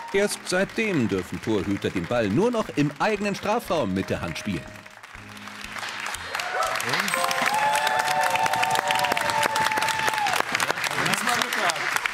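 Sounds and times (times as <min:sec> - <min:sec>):
audience applause: 0:00.0 - 0:12.1
speech: 0:00.1 - 0:04.9.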